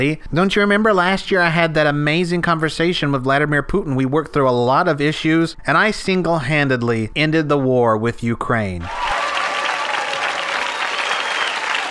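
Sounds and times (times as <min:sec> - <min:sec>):
speech: 0:00.0 - 0:09.1
audience clapping: 0:08.9 - 0:11.8.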